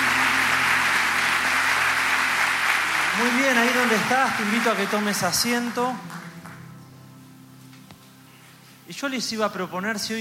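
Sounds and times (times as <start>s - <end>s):
audience applause: 0.0s - 6.6s
speech: 3.2s - 6.2s, 8.9s - 10.1s.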